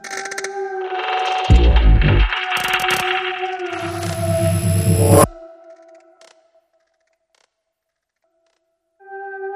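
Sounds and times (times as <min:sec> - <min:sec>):
crackling strings underscore: 0:00.8 - 0:05.3.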